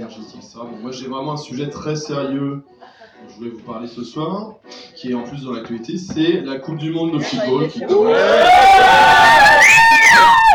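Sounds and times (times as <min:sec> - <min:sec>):
speech: 0:00.1 - 0:10.4
audience booing: 0:07.9 - 0:10.5.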